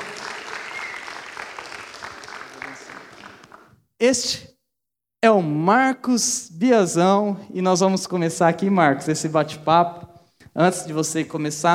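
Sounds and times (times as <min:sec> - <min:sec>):
audience applause: 0:00.0 - 0:03.7
speech: 0:04.0 - 0:04.5, 0:05.2 - 0:10.0, 0:10.6 - 0:11.7.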